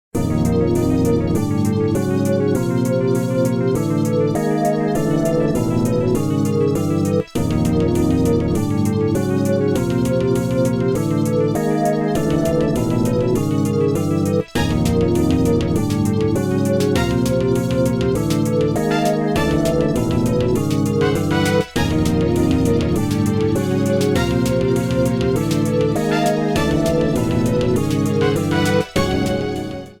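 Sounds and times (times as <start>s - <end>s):
music: 0.2s - 29.9s.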